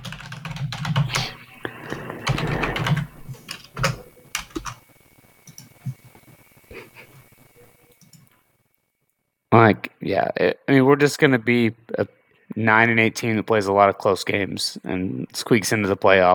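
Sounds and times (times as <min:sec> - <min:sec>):
typing on a computer keyboard: 0:00.0 - 0:04.8
speech: 0:09.6 - 0:16.3.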